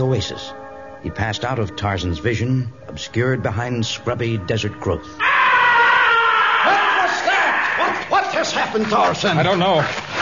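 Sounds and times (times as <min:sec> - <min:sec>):
speech: 0:00.0 - 0:05.4, 0:08.4 - 0:10.0
man screaming: 0:05.2 - 0:08.0.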